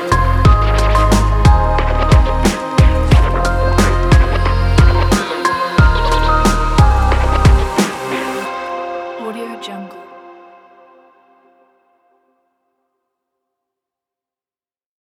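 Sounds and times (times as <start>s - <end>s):
lo-fi hip hop beat: 0.0s - 8.7s.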